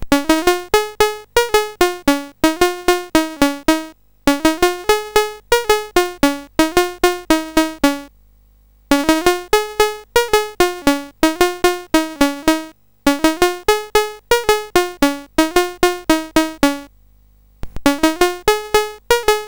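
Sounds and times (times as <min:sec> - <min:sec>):
SID CSG8580R5 sound chip music: 0:00.1 - 0:08.1, 0:08.9 - 0:16.9, 0:17.8 - 0:19.4.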